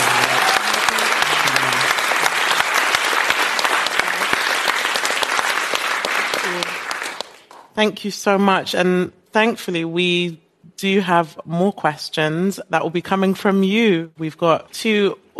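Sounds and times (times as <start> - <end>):
audience applauding: 0.0 - 7.7
speech: 7.8 - 15.3.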